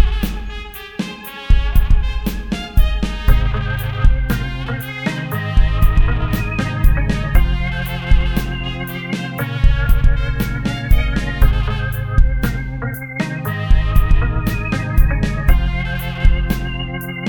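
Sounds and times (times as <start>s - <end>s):
organ playing: 0.0s - 17.2s.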